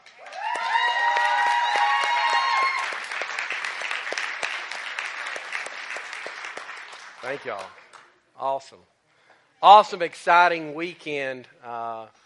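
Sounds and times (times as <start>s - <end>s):
crowd applause: 0.0s - 8.0s
high-pitched cheers and whoops: 0.1s - 3.1s
speech: 7.3s - 7.8s, 8.4s - 9.0s, 9.6s - 12.2s.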